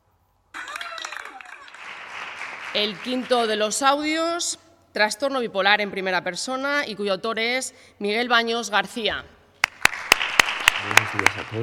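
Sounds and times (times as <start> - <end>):
audience applause: 0.6 - 3.6, 9.6 - 11.6
speech: 2.8 - 9.4, 11.1 - 11.6.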